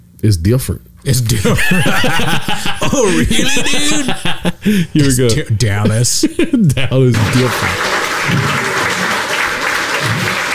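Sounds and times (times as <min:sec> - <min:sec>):
speech: 0:00.2 - 0:08.7
laughter: 0:01.3 - 0:10.5
audience applause: 0:07.0 - 0:10.5.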